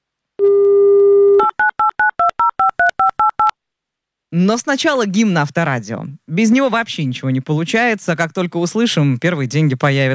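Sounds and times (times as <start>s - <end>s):
short keypad dialing beeps: 1.1s - 3.6s
speech: 4.3s - 10.1s.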